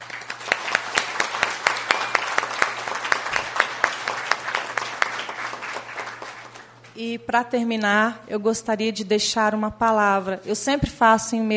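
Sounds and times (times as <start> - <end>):
audience applause: 0.0 - 6.9
speech: 7.0 - 11.5.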